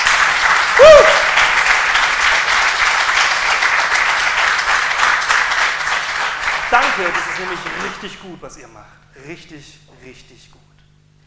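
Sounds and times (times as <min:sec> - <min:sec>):
audience applause: 0:00.0 - 0:08.3
speech: 0:06.7 - 0:10.6.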